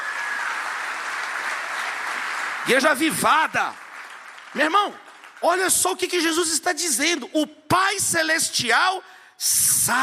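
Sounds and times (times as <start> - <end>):
church congregation clapping during a Pentecostal service: 0.0 - 6.6
speech: 2.6 - 3.8, 4.5 - 10.0.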